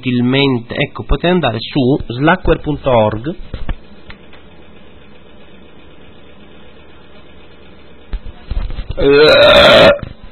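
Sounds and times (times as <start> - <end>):
speech: 0.0 - 3.6, 9.0 - 10.1
long loud voiced burp: 9.0 - 10.2.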